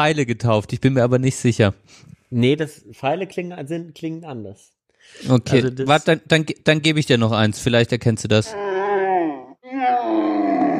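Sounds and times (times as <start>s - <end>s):
speech: 0.0s - 8.7s
camel groaning: 8.5s - 10.7s.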